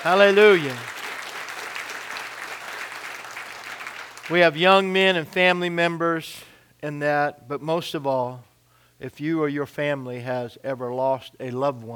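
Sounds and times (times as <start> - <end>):
speech: 0.0 - 0.9, 4.3 - 11.9
audience applause: 0.0 - 4.4.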